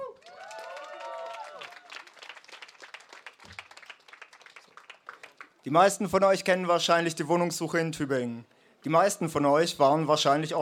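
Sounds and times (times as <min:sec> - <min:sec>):
audience applause: 0:00.0 - 0:05.6
speech: 0:05.7 - 0:10.6.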